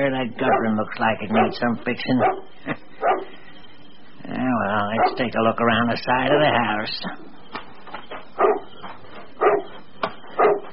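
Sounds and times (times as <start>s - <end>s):
speech: 0.0s - 3.3s, 4.3s - 7.3s
low hum: 0.0s - 10.7s
dog barking outside at night near a house: 0.4s - 3.3s, 4.9s - 5.3s, 8.4s - 8.7s, 9.4s - 9.8s, 10.4s - 10.7s.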